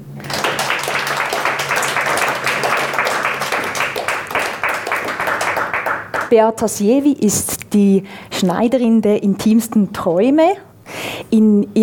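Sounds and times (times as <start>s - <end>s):
audience applause: 0.0s - 6.3s
speech: 6.3s - 10.6s, 11.3s - 11.8s.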